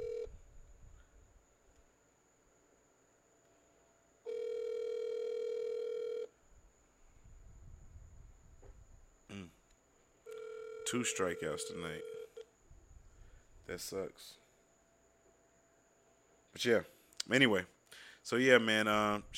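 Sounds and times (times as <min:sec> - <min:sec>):
phone ringback tone on an outgoing call: 0:00.0 - 0:00.4, 0:04.3 - 0:06.3, 0:10.3 - 0:12.4
hiss: 0:00.0 - 0:19.3
speech: 0:10.9 - 0:12.2, 0:13.7 - 0:14.4, 0:16.6 - 0:19.3.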